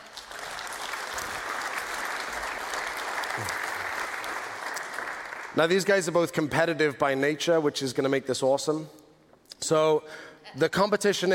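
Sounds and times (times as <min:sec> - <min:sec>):
audience applause: 0:00.0 - 0:05.6
speech: 0:05.6 - 0:09.0, 0:09.7 - 0:11.3.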